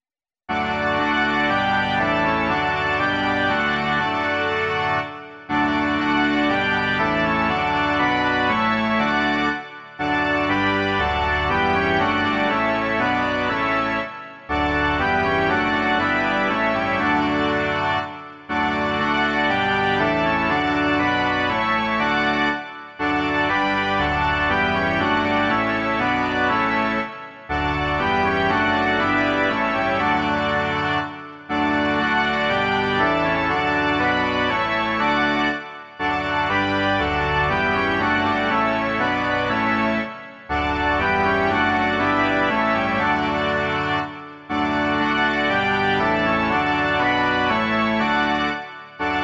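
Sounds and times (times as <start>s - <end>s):
organ: 0.5s - 49.2s.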